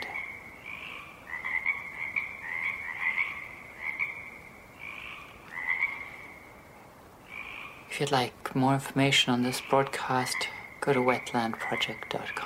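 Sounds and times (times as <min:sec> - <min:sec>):
frog chorus croaking: 0:00.0 - 0:12.4
low hiss: 0:00.0 - 0:12.4
speech: 0:08.0 - 0:12.4.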